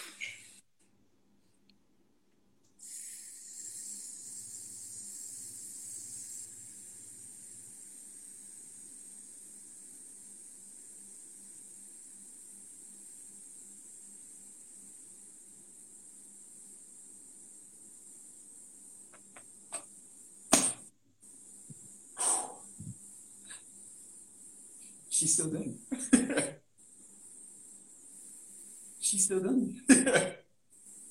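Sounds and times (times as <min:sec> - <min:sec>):
person hissing s sound on exhaled breath: 0:02.8 - 0:09.6, 0:22.2 - 0:22.9
speech: 0:25.2 - 0:26.6, 0:29.3 - 0:30.3.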